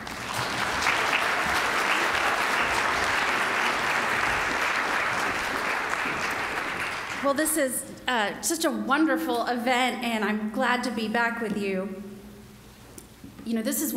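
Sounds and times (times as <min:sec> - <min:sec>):
conference audience applause welcoming Florida's Attorney General: 0:00.0 - 0:07.3
speech: 0:07.2 - 0:12.0, 0:13.5 - 0:13.9.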